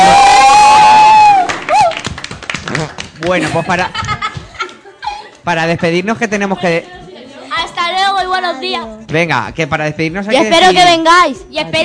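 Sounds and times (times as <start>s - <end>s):
children cheering: 0.0s - 2.0s
children applauding: 0.0s - 3.4s
speech: 3.3s - 4.0s, 5.5s - 7.0s, 8.4s - 11.8s
laughter: 3.3s - 5.4s.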